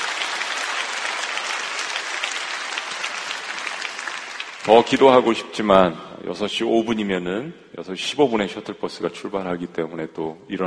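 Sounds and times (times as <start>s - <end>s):
audience applause: 0.0s - 5.4s
speech: 4.7s - 10.6s.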